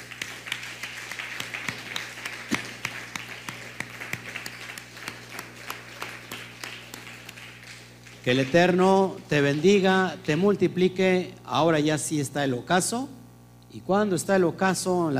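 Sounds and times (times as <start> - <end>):
crowd applauding: 0.0 - 10.6
low constant hum: 0.0 - 15.1
speech: 8.2 - 15.1.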